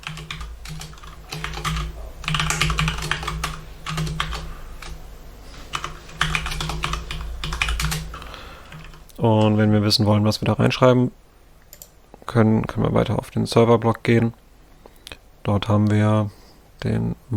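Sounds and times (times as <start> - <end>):
typing on a computer keyboard: 0.0 - 5.0, 5.6 - 9.2, 11.6 - 12.0
faint low hum: 0.0 - 17.3
speech: 9.2 - 11.2, 12.3 - 14.4, 15.4 - 17.3.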